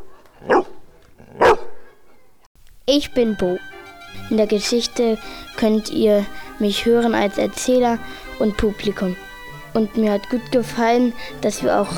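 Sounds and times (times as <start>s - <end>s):
school dog barking in the park: 0.4s - 2.2s
speech: 2.9s - 11.9s.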